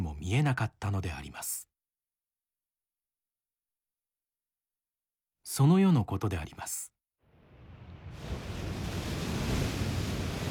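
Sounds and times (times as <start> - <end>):
speech: 0.3 - 1.7, 5.5 - 6.9
great storm wind: 7.3 - 10.5
storm waves: 7.3 - 10.5.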